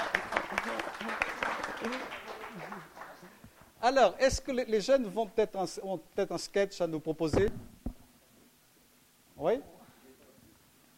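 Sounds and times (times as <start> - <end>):
applause: 0.0 - 3.4
speech: 3.8 - 7.7, 9.4 - 9.7.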